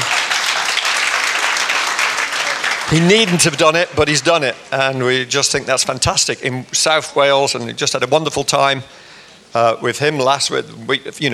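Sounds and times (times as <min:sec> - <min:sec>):
audience applause: 0:00.0 - 0:03.9
speech: 0:02.9 - 0:11.3.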